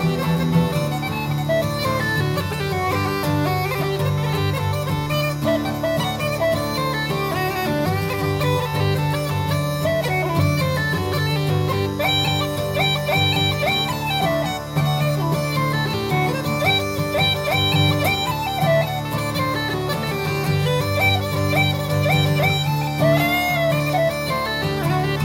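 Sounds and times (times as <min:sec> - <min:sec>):
jig music: 0:00.0 - 0:25.2.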